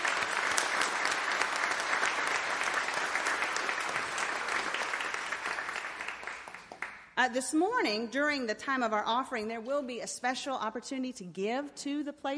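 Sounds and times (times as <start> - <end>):
audience clapping: 0.0 - 7.2
speech: 7.2 - 12.3.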